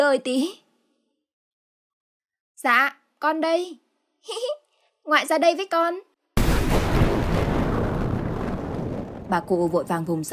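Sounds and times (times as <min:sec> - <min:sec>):
speech: 0:00.0 - 0:00.6, 0:02.6 - 0:06.1, 0:09.3 - 0:10.3
rumbling thunderclap: 0:06.4 - 0:10.3.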